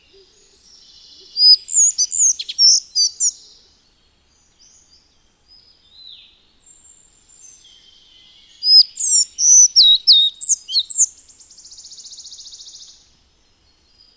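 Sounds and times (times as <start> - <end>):
Collared flycatcher song of high squeaky whistled notes: 1.4 - 3.4, 8.7 - 11.1.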